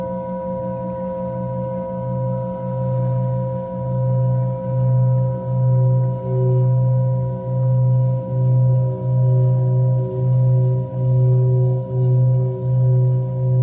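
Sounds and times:
deep low pulsing hum: 0:00.0 - 0:13.6
singing bowl ringing with overtones: 0:00.0 - 0:13.6.

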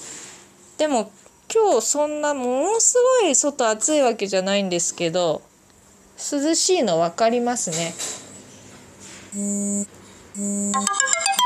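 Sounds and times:
speech: 0:00.8 - 0:05.5, 0:06.2 - 0:08.2, 0:09.3 - 0:11.2
alarm going off: 0:09.4 - 0:10.9.

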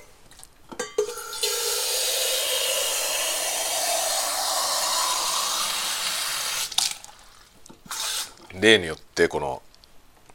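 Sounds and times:
water running while making coffee: 0:01.2 - 0:08.6
speech: 0:08.6 - 0:09.7.

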